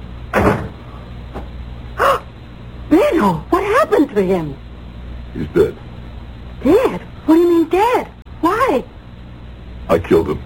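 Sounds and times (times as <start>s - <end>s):
door closing: 0.3s - 0.8s
speech: 3.2s - 3.5s, 4.2s - 4.7s, 5.3s - 5.8s, 6.6s - 8.9s, 9.9s - 10.4s.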